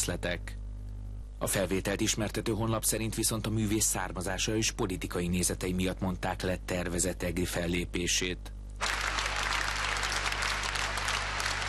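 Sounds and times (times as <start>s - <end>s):
speech: 0.0s - 0.6s, 1.4s - 8.6s
long applause: 8.8s - 11.6s.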